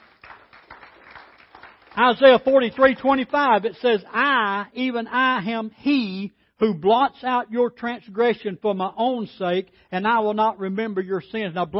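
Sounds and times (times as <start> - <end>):
audience hand clapping: 0.0 - 3.2
speech: 2.0 - 11.7.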